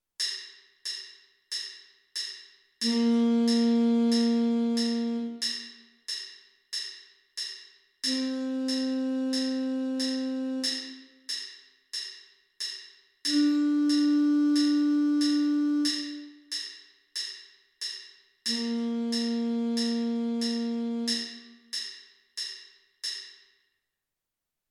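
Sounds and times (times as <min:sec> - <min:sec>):
alto saxophone: 0:02.8 - 0:05.7, 0:08.0 - 0:11.2, 0:13.3 - 0:16.5, 0:18.5 - 0:21.7.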